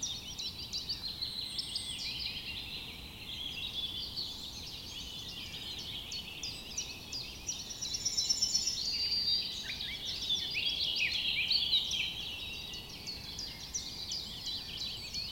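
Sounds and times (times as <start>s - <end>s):
morning European forest ambience: 0.0s - 15.3s.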